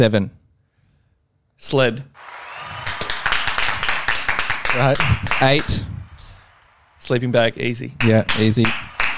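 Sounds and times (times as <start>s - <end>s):
speech: 0.0s - 0.4s, 1.6s - 2.4s, 4.7s - 6.0s, 7.0s - 8.8s
live audience applause: 2.2s - 9.1s.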